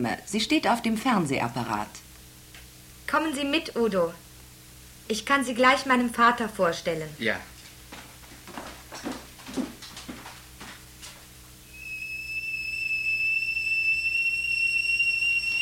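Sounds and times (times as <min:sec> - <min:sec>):
speech: 0:00.0 - 0:02.0, 0:03.1 - 0:04.2, 0:05.1 - 0:07.5
kettle whistling as water boils: 0:11.6 - 0:15.5.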